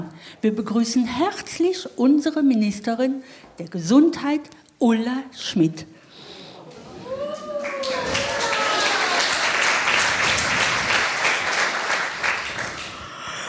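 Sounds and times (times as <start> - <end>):
speech: 0.2 - 6.0
audience applause: 7.0 - 13.1
whistles and cheers: 7.1 - 9.7.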